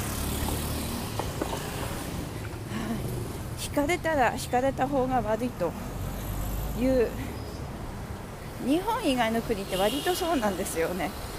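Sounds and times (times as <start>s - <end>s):
motorbike traffic rumbling on a street: 0.0s - 11.3s
speech: 3.6s - 5.9s, 6.8s - 7.3s, 8.6s - 11.3s.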